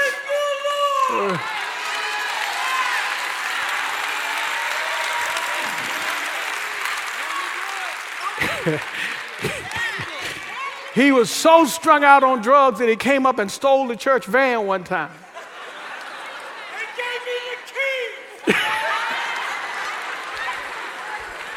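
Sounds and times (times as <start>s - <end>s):
loud hollering and whoops: 0.0s - 11.0s, 18.4s - 21.5s
audience applause: 0.0s - 11.9s, 15.4s - 17.7s, 18.4s - 21.5s
speech: 1.1s - 1.6s, 8.6s - 9.8s, 11.0s - 15.2s
laughter: 5.5s - 6.8s, 7.4s - 11.2s, 15.1s - 21.5s.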